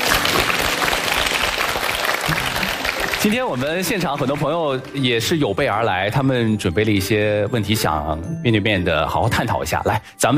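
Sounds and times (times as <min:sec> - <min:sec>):
audience applause: 0:00.0 - 0:05.1
speech: 0:03.2 - 0:10.3.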